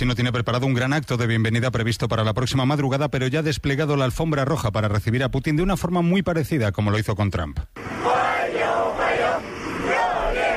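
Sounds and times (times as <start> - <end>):
speech: 0.0 - 8.2
children with flags of China and Russia cheering a leader's arrival: 7.8 - 10.5.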